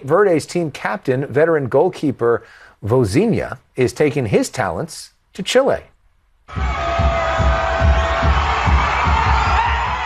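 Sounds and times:
speech: 0.0 - 5.9, 6.5 - 6.8
large crowd cheering and roaring: 6.5 - 10.0
rhythmic low thumping: 6.5 - 10.0.

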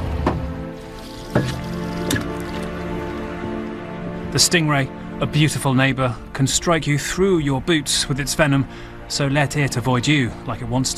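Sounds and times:
water sloshing and dripping against a small boat: 0.0 - 3.6
speech: 4.4 - 10.9.

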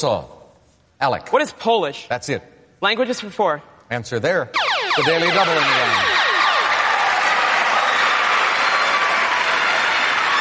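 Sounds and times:
speech: 0.0 - 0.4, 1.0 - 6.2
studio audience clapping and cheering: 5.6 - 10.3.

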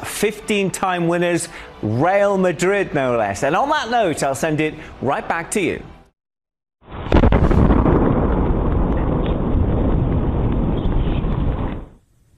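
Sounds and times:
speech: 0.2 - 5.9
double boom of a 3-foot-wide meteor entering the atmosphere near Massachusetts: 6.9 - 12.0.

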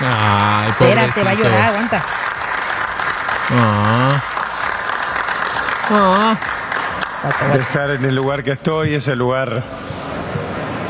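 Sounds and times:
audience applause: 0.0 - 8.4
speech: 0.8 - 2.3, 3.5 - 4.3, 5.9 - 6.5, 7.2 - 9.9.

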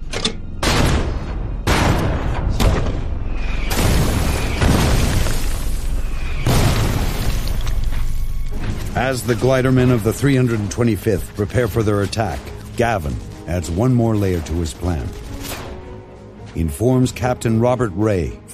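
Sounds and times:
heavy artillery barrage explosions against German defenders: 0.6 - 8.0
speech: 9.0 - 15.2, 16.5 - 18.5.

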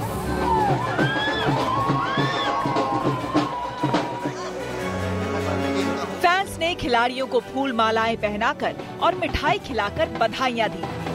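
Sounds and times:
crowd cheering to welcome garlanded medal-winning athletes at IGI Airport: 0.0 - 6.1
speech: 6.8 - 11.1.

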